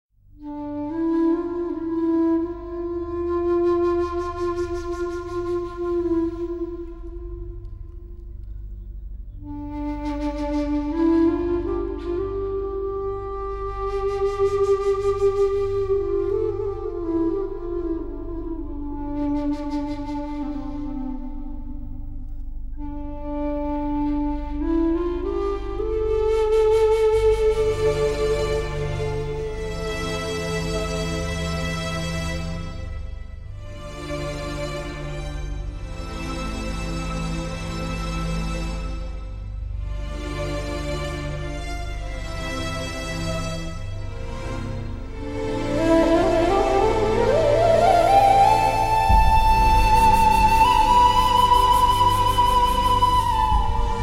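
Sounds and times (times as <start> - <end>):
slow theme music: 0.2 - 54.0.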